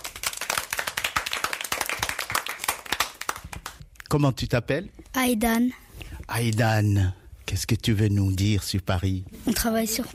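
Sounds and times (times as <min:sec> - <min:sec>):
children applauding: 0:00.0 - 0:03.8
speech: 0:04.1 - 0:10.1.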